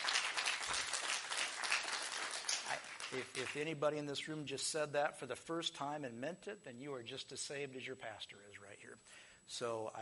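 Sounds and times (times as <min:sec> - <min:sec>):
audience applause: 0:00.0 - 0:03.4
speech: 0:03.1 - 0:10.0.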